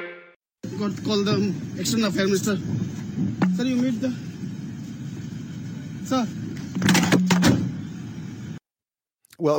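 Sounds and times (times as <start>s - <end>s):
speech: 0.8s - 4.4s, 6.1s - 6.4s
door slamming: 6.7s - 7.8s.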